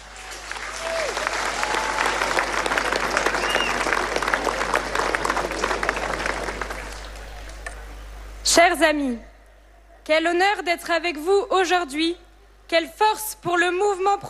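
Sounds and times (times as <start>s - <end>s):
crowd applause at a pro-life march: 0.0s - 7.8s
faint whistles: 3.4s - 3.8s
speech: 8.6s - 9.3s, 10.1s - 14.2s.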